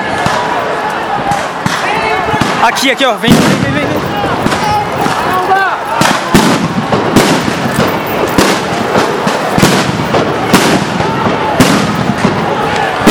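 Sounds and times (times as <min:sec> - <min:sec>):
gunshots: 0:00.0 - 0:13.0
police bombs exploding: 0:01.2 - 0:13.0
speech: 0:02.6 - 0:03.8.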